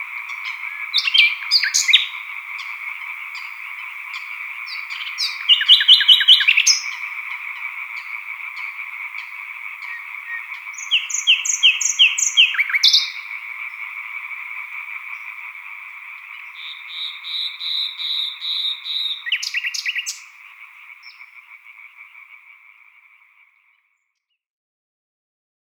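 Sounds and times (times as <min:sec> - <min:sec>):
solo nightingale singing: 0:00.0 - 0:14.0, 0:15.1 - 0:21.4
coots calling: 0:00.0 - 0:22.1
chorus of green tree frogs: 0:00.0 - 0:24.2.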